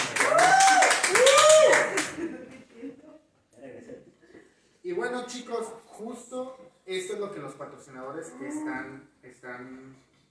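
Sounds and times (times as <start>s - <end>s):
audience applause: 0.0s - 2.3s
cheers or whistles: 0.2s - 1.9s
speech: 5.2s - 10.1s.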